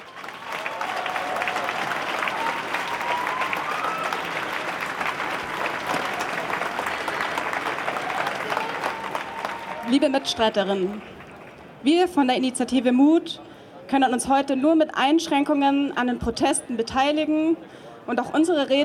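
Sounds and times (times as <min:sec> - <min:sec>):
crowd applause: 0:00.0 - 0:11.8
speech: 0:09.9 - 0:11.2, 0:11.8 - 0:18.8.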